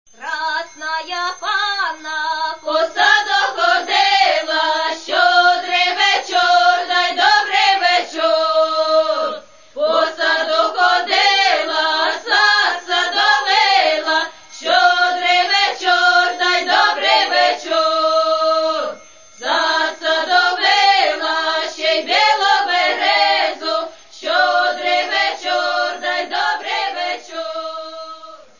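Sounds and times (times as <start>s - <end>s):
koljadky carol singing: 0.1s - 28.5s.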